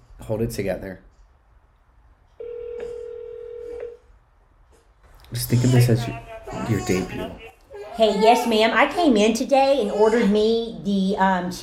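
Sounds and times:
speech: 0:00.3 - 0:01.1, 0:05.3 - 0:11.6
telephone ringing: 0:02.4 - 0:04.0.

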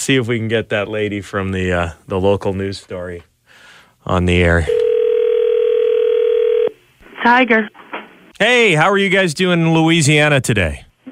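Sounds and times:
speech: 0:00.0 - 0:03.3, 0:04.0 - 0:04.8, 0:07.2 - 0:07.8, 0:08.4 - 0:10.9
telephone dial tone while placing a call: 0:04.7 - 0:06.7.

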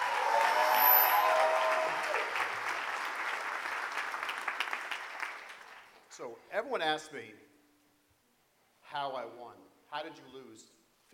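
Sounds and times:
round of applause: 0:00.0 - 0:06.1
whistle-like tone: 0:00.6 - 0:01.4
speech: 0:06.2 - 0:07.5, 0:08.9 - 0:11.1.

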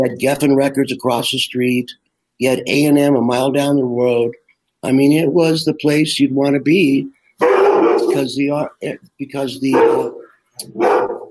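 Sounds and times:
speech: 0:00.0 - 0:11.1
big doodle dog barking and whimpering: 0:07.4 - 0:08.2, 0:09.7 - 0:11.3.

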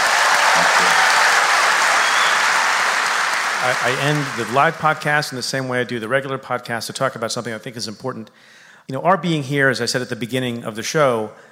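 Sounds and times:
audience applause: 0:00.0 - 0:05.4
speech: 0:03.6 - 0:11.5.

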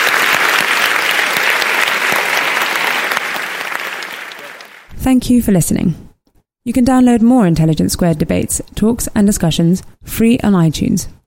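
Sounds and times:
audience applause: 0:00.0 - 0:04.9
speech: 0:05.0 - 0:06.0, 0:06.6 - 0:11.2.

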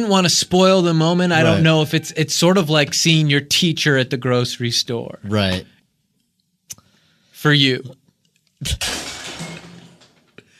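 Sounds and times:
speech: 0:00.0 - 0:05.7, 0:07.4 - 0:08.0, 0:08.6 - 0:09.0
plate shattering: 0:08.7 - 0:10.5.

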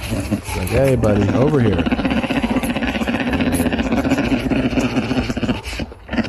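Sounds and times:
bear cub growling: 0:00.0 - 0:06.2
speech: 0:00.1 - 0:02.1.

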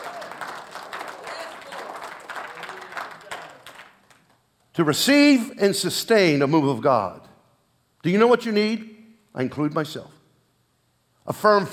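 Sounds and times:
crowd audience applause: 0:00.0 - 0:04.4
speech: 0:04.8 - 0:07.3, 0:08.0 - 0:10.2, 0:11.2 - 0:11.7.

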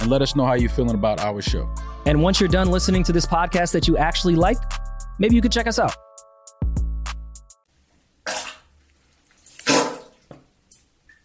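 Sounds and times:
speech: 0:00.0 - 0:06.0
fart sounds: 0:09.6 - 0:10.2.

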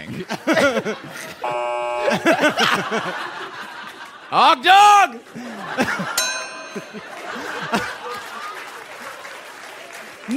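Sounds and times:
speech: 0:00.1 - 0:03.7, 0:04.3 - 0:07.8
chuckling laughter: 0:00.1 - 0:04.3, 0:05.3 - 0:08.6
electronic buzzer sound effect: 0:01.4 - 0:02.5.

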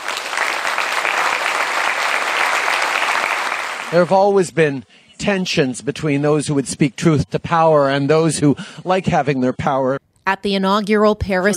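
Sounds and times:
applause after a speech: 0:00.0 - 0:04.2
speech: 0:03.9 - 0:11.5.

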